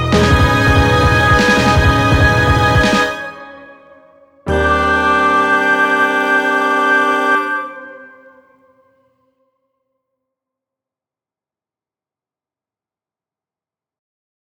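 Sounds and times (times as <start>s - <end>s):
deranged modern music ending stinger: 0.2s - 3.4s, 4.5s - 8.3s.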